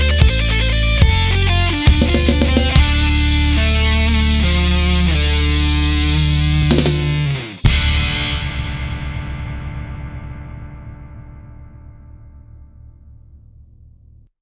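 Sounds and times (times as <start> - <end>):
rock electric guitar solo: 0.0 - 10.1.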